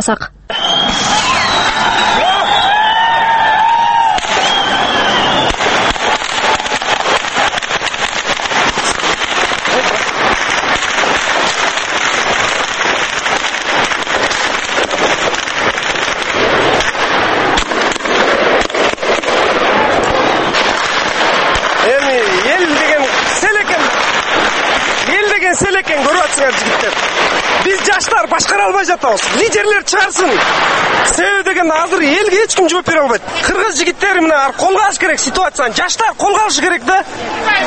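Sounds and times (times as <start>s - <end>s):
speech: 0.0s - 1.0s, 28.8s - 37.6s
dense crackling noise: 0.0s - 37.6s
crowd of protesters roaring outside the White House in Bishkek, Kyrgyzstan: 0.5s - 29.6s
people shouting: 0.5s - 30.4s.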